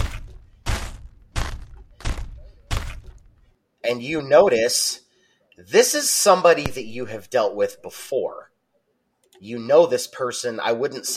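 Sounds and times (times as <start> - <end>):
footsteps stomping: 0.0 - 3.5
speech: 3.9 - 5.0, 5.6 - 8.5, 9.4 - 11.1.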